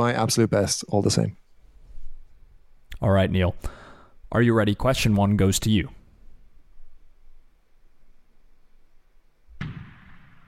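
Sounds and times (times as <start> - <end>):
speech: 0.0 - 1.4, 3.0 - 6.0
fireworks sound effect: 9.6 - 10.4.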